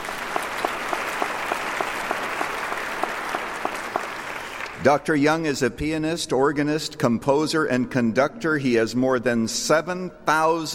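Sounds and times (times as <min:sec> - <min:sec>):
audience applauding to welcome a guest: 0:00.0 - 0:04.8
sharp individual claps: 0:00.0 - 0:04.8
speech: 0:04.8 - 0:10.7.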